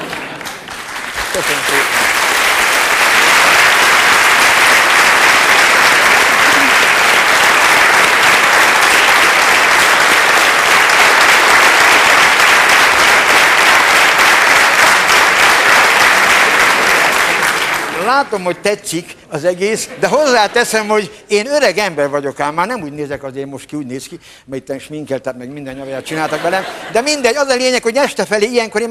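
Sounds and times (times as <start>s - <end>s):
audience applause: 0.0s - 18.5s
speech: 1.4s - 2.0s, 18.2s - 28.9s
laughter: 5.7s - 7.2s, 19.5s - 21.0s, 25.7s - 27.3s.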